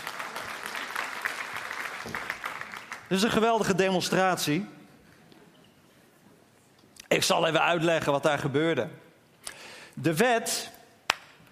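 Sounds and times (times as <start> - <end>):
audience applause: 0.0 - 3.3
speech: 2.0 - 2.3, 3.1 - 4.8, 7.3 - 9.0, 10.0 - 10.8.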